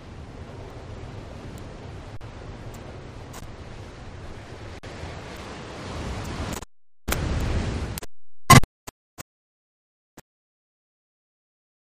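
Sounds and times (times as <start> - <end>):
medium waves crashing: 0.0 - 8.0.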